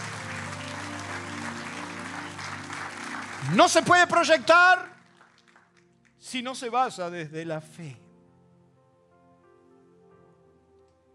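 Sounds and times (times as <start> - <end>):
audience applause: 0.0 - 5.9
speech: 3.4 - 4.9, 6.2 - 8.0.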